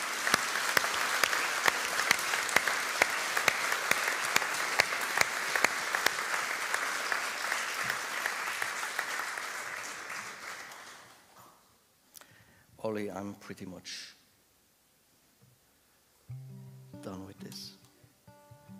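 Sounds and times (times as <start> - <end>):
audience applause: 0.0 - 11.4
speech: 12.9 - 14.2.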